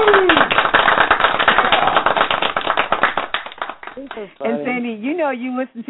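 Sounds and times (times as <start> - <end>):
applause clap sound effect: 0.0 - 4.3
speech: 4.2 - 5.8.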